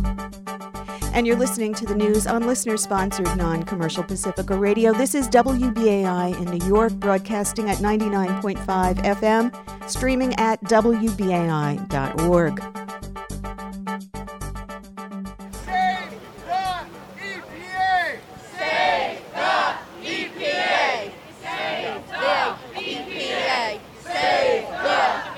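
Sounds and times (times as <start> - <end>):
speech: 1.2 - 12.8
large protest rally crowd chanting: 15.5 - 25.3.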